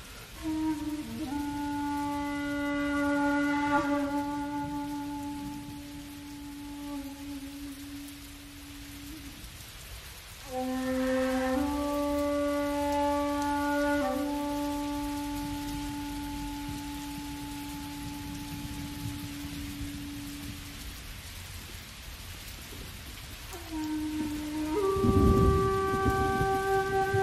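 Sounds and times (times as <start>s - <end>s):
flute: 0.0s - 21.4s, 23.4s - 27.2s
rain: 0.0s - 27.2s.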